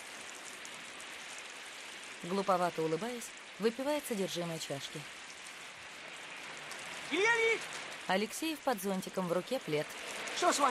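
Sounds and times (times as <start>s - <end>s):
raindrops falling: 0.0s - 10.7s
speech: 2.2s - 5.2s, 7.1s - 10.7s.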